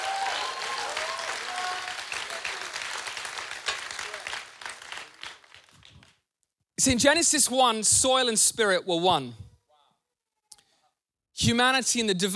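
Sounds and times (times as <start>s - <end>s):
audience applause: 0.0s - 6.2s
speech: 6.8s - 9.4s, 11.5s - 12.3s.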